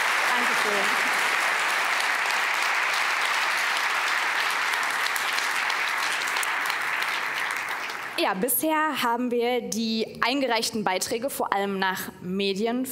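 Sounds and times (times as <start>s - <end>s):
applause: 0.0s - 8.4s
speech: 0.4s - 1.1s, 8.2s - 12.9s.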